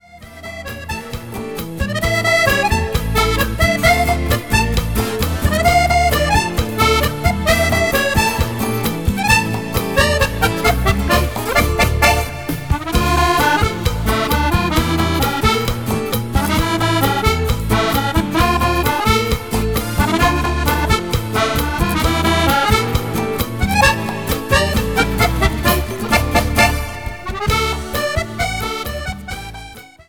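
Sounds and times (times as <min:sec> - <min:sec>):
latin dance music: 0:00.0 - 0:30.0.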